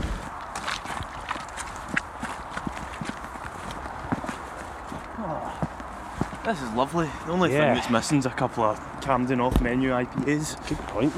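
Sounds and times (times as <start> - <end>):
footsteps of people walking outdoors on hard ground: 0.0 - 6.8
speech: 6.5 - 11.1.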